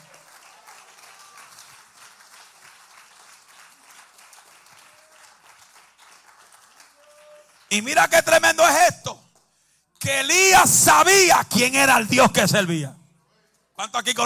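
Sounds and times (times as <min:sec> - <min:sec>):
audience applause: 0:00.0 - 0:07.8
speech: 0:07.7 - 0:09.3, 0:10.0 - 0:13.0, 0:13.8 - 0:14.2.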